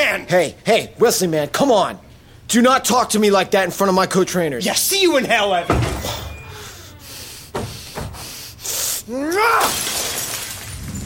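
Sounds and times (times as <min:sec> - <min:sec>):
speech: 0:00.2 - 0:06.2, 0:09.1 - 0:09.9
glass fishbowl smashing: 0:09.6 - 0:11.0.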